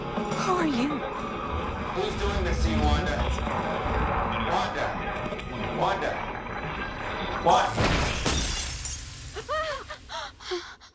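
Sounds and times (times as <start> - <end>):
speech: 0.6 - 1.2, 2.0 - 8.1
glass shattering: 7.5 - 10.1
glass pieces tinkling as they settle: 8.3 - 10.0.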